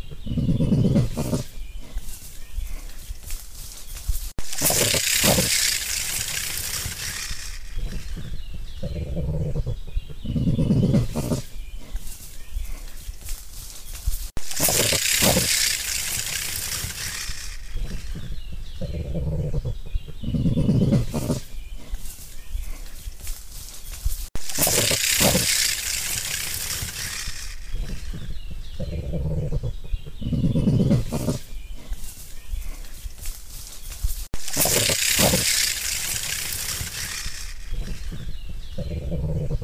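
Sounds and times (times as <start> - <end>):
crested porcupine grunting: 0.0 - 3.1, 4.5 - 12.0, 14.5 - 23.0, 24.5 - 33.0, 34.4 - 39.6
crested porcupine hissing rustling rattle: 3.6 - 8.2, 13.7 - 18.2, 24.4 - 28.0, 33.5 - 38.2.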